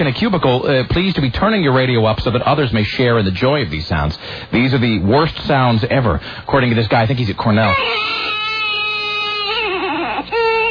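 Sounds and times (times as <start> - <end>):
speech: 0.1 - 8.2
baby cry morphing into chicken sound: 7.6 - 10.6.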